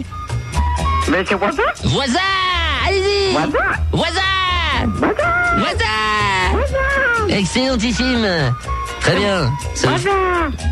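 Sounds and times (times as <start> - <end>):
speech: 1.1 - 10.7
person imitating animal noises, bleating: 4.5 - 7.5.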